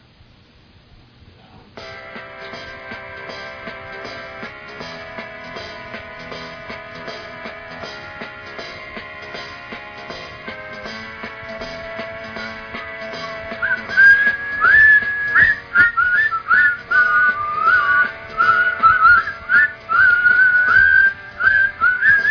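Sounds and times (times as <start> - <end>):
person whistling a song: 13.2 - 22.2.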